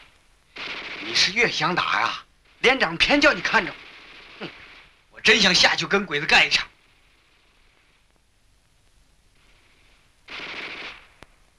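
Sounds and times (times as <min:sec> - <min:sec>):
single sharp isolated shot: 0:00.6 - 0:01.4, 0:10.3 - 0:11.3
Japanese Type 11 light machine gun firing: 0:00.6 - 0:06.6, 0:09.7 - 0:11.2
speech: 0:01.1 - 0:03.8, 0:04.4 - 0:04.6, 0:05.2 - 0:06.7.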